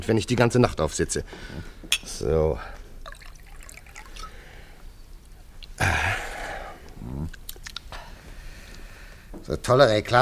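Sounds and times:
speech: 0:00.0 - 0:02.8, 0:09.5 - 0:10.2
faint noise: 0:00.0 - 0:10.2
drink being poured: 0:03.0 - 0:05.8.

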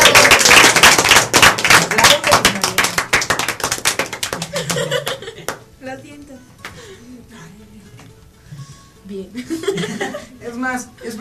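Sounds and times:
group applauding: 0:00.0 - 0:05.7
laughter: 0:04.4 - 0:05.5, 0:09.4 - 0:10.4
speech: 0:09.1 - 0:11.1.

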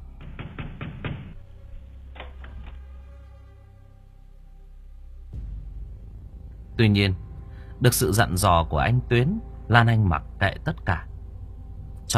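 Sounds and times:
low rumbling drone: 0:00.0 - 0:12.1
knocking on a wooden door at night: 0:00.2 - 0:01.4
speech: 0:06.8 - 0:07.2, 0:07.8 - 0:11.1.

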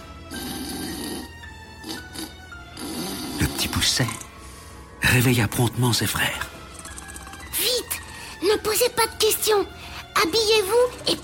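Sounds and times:
ogre snoring loudly through a house: 0:00.2 - 0:03.9
speech: 0:03.9 - 0:04.3, 0:05.1 - 0:06.6, 0:08.4 - 0:11.2.

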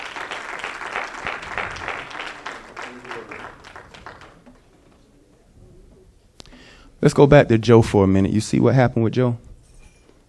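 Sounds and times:
audience clapping hands in praise: 0:00.0 - 0:05.0
speech: 0:07.0 - 0:09.4.

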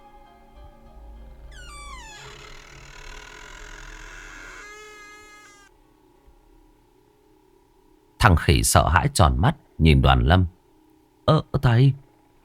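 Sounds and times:
door creaking open: 0:01.4 - 0:05.7
speech: 0:08.2 - 0:10.6, 0:11.3 - 0:12.0.

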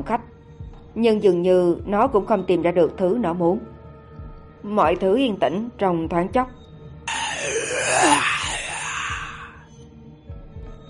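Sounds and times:
speech: 0:00.0 - 0:00.4, 0:01.0 - 0:03.7, 0:04.6 - 0:07.2
eerie ghostly breathy moaning sigh: 0:07.1 - 0:09.6.

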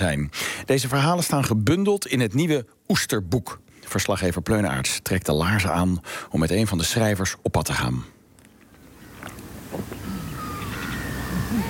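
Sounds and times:
speech: 0:00.0 - 0:08.2
gulls calling: 0:08.6 - 0:11.6
steady low rumble of wind: 0:08.6 - 0:11.6.

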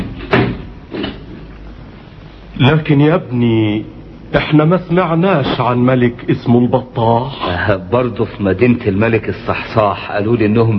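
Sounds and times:
door pushed shut: 0:00.0 - 0:01.2
faint hiss: 0:00.0 - 0:10.7
speech: 0:02.6 - 0:10.7.

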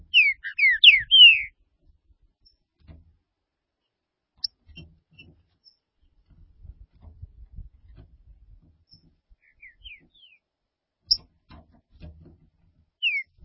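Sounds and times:
green-winged saltator whistled song: 0:00.1 - 0:01.5, 0:09.5 - 0:10.4, 0:13.0 - 0:13.3.

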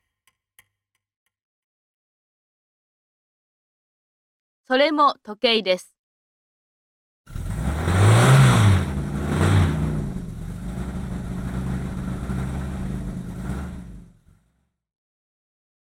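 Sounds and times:
speech: 0:04.7 - 0:05.9
taxi engine driving: 0:07.3 - 0:14.4.

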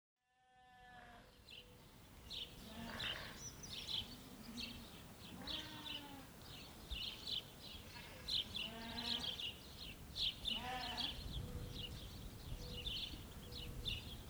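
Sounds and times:
sparrows chirping: 0:01.3 - 0:14.2
small group of sheep bleating: 0:02.6 - 0:03.5, 0:04.5 - 0:06.3, 0:07.9 - 0:09.5, 0:10.5 - 0:11.2.

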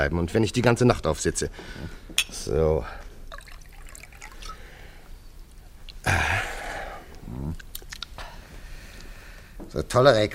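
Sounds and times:
speech: 0:00.0 - 0:03.0, 0:09.8 - 0:10.3
drink pouring into a glass: 0:03.3 - 0:04.8.

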